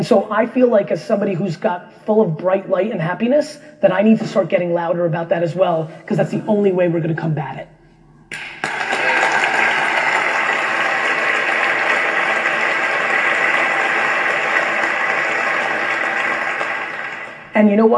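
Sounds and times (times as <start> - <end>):
speech: 0.0 - 8.4, 17.6 - 17.9
audience applause: 8.3 - 17.6.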